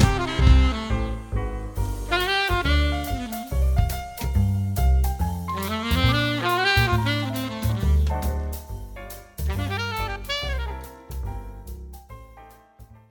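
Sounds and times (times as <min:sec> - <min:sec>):
saxophone playing: 0:00.0 - 0:01.4, 0:02.0 - 0:04.4, 0:05.6 - 0:08.5, 0:09.4 - 0:10.9.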